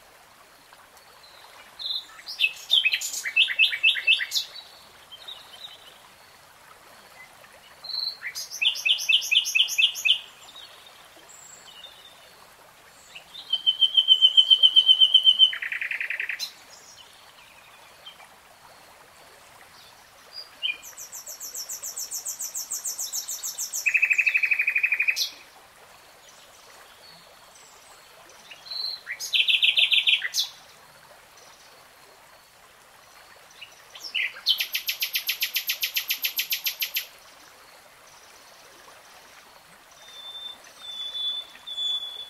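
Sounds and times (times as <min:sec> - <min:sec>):
soft hiss: 0:00.0 - 0:40.8
nightingale song: 0:01.2 - 0:06.0, 0:07.2 - 0:12.2, 0:13.1 - 0:18.2, 0:19.8 - 0:25.4, 0:28.5 - 0:30.6, 0:33.6 - 0:37.2, 0:40.0 - 0:42.2.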